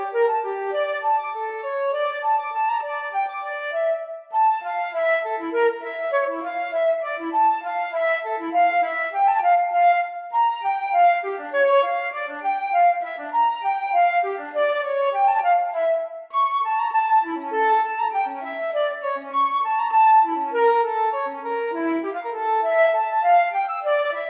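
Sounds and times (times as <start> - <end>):
pastorale for solo flute: 0.0 - 24.2.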